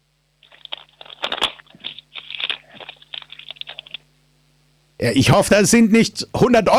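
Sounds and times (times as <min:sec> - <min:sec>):
paper being torn: 0:00.4 - 0:04.0
speech: 0:05.0 - 0:06.7.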